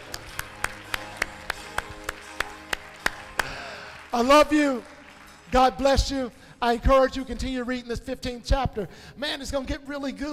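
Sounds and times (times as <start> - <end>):
audience clapping hands: 0.0 - 6.5
speech: 4.1 - 4.9, 5.5 - 10.3.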